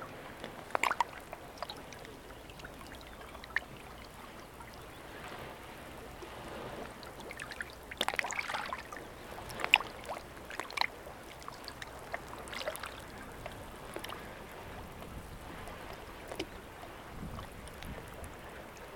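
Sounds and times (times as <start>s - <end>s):
water washing around a rockpool in Wester Ross: 0.0s - 18.9s
sharp splashes and drips: 0.1s - 18.9s.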